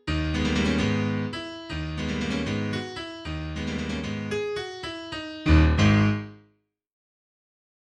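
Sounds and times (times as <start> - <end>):
prelude in G sharp minor: 0.0 - 6.4.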